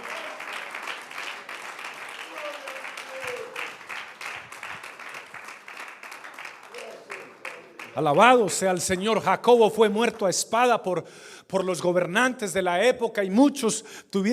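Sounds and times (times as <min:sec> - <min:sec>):
audience applause: 0:00.0 - 0:08.4
speech: 0:08.0 - 0:14.3.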